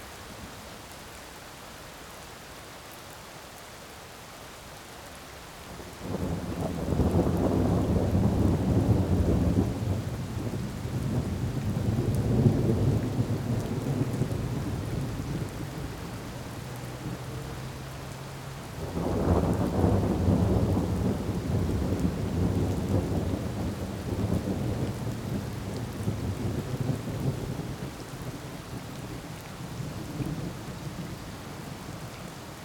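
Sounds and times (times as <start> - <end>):
evening rain: 0.0 - 32.6
evening thunder: 6.1 - 15.9, 18.8 - 27.8.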